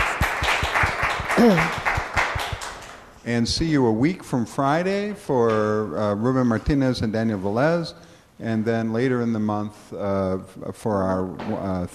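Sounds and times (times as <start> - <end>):
audience applause following a presentation at a talk event: 0.0 - 3.0
person's voice: 1.4 - 1.8
speech: 1.4 - 1.8, 3.2 - 11.9.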